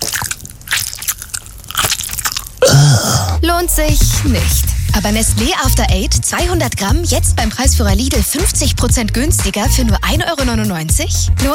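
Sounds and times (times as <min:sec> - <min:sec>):
crunching on peppermint tea bags: 0:00.0 - 0:03.3
speech: 0:03.0 - 0:11.5.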